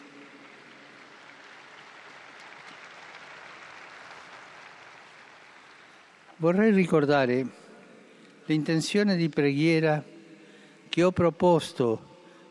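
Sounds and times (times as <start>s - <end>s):
sustained applause from a large crowd: 0.0s - 7.0s
speech: 6.4s - 7.6s, 8.5s - 10.1s, 10.9s - 12.1s.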